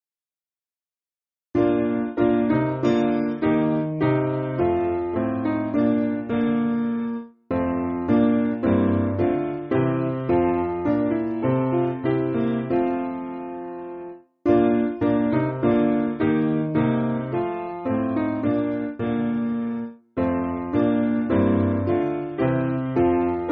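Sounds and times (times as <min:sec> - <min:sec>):
piano backing music for churches: 0:01.6 - 0:23.5.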